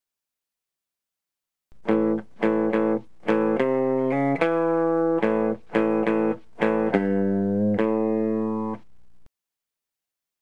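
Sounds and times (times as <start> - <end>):
guitar: 1.8 - 9.1.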